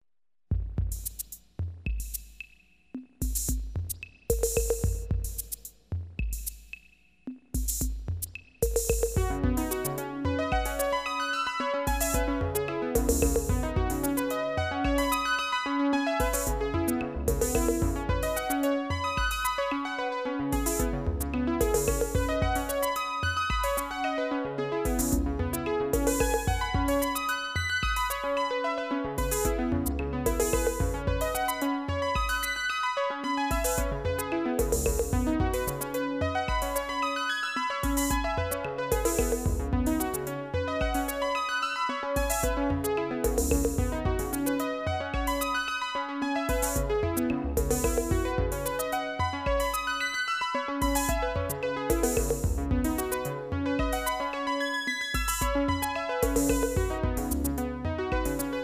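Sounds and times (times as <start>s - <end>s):
percussion: 0.5s - 11.0s, 11.9s - 15.5s, 16.2s - 19.7s, 20.6s - 24.0s, 24.9s - 28.4s, 29.2s - 32.7s, 33.5s - 37.1s, 37.8s - 41.4s, 42.2s - 45.7s, 46.5s - 50.0s, 50.8s - 57.6s
synthesizer melody: 8.9s - 58.6s.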